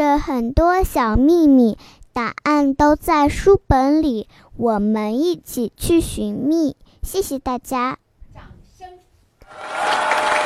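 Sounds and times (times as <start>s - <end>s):
speech: 0.2s - 8.0s, 8.8s - 10.4s
warm audience applause: 9.4s - 10.4s.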